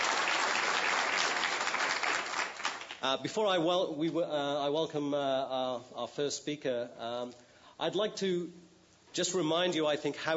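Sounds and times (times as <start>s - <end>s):
audience applause for an event organizer: 0.0s - 3.0s
speech: 3.0s - 10.3s.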